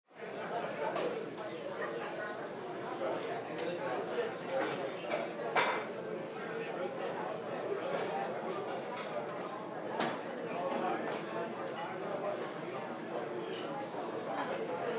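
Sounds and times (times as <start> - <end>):
restaurant ambience: 0.2 - 14.9.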